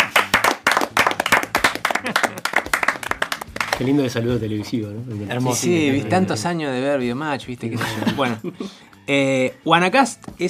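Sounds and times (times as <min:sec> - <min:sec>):
clapping applause: 0:00.0 - 0:04.0
laughter: 0:01.8 - 0:02.7, 0:07.7 - 0:08.6
speech: 0:03.8 - 0:10.4.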